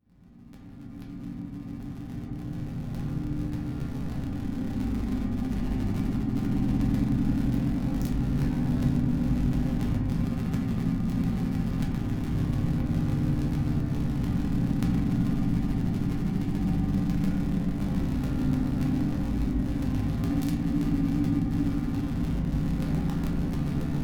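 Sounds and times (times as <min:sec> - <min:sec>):
tesla coil buzz: 0:00.3 - 0:24.0.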